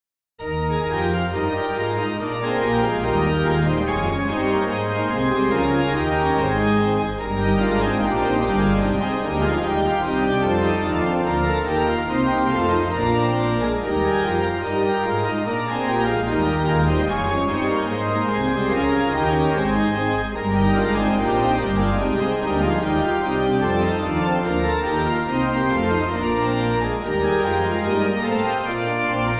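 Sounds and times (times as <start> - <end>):
organ music: 0.4 - 29.3.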